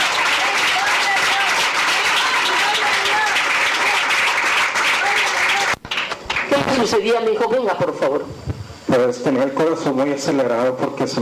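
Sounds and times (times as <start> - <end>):
audience applauding: 0.0 - 7.1
speech: 6.8 - 11.1.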